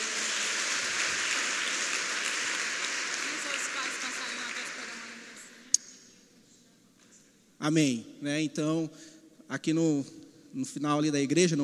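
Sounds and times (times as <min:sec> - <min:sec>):
audience applause: 0:00.0 - 0:05.5
speech: 0:07.6 - 0:11.6.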